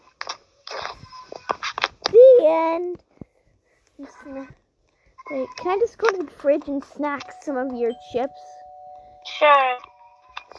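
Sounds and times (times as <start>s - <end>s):
speech: 2.5s - 3.1s, 4.0s - 4.6s, 5.3s - 8.6s, 9.4s - 9.9s
electronic doorbell ringing: 7.3s - 10.3s.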